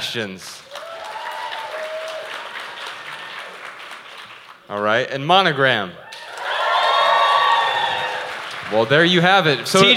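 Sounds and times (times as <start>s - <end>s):
speech: 0.1s - 0.7s, 4.7s - 6.0s, 8.7s - 9.9s
crowd applauding: 0.6s - 4.9s, 6.1s - 9.9s.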